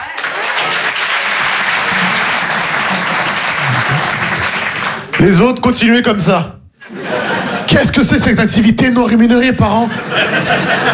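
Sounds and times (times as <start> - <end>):
laughter: 0.0 - 5.1, 6.8 - 8.3, 9.8 - 10.9
audience applause: 0.0 - 5.4
speech: 5.2 - 6.6, 7.7 - 10.9.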